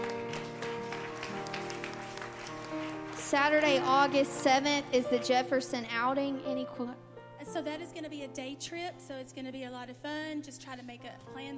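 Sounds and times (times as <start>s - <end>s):
audience applauding with hand claps: 0.0s - 4.8s
speech: 3.3s - 11.5s.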